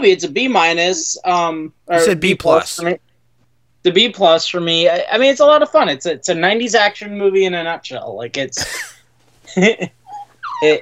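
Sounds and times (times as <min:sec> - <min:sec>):
speech: 0:00.0 - 0:03.1, 0:03.8 - 0:08.9, 0:09.5 - 0:10.0, 0:10.6 - 0:10.8
dog whining: 0:10.1 - 0:10.8.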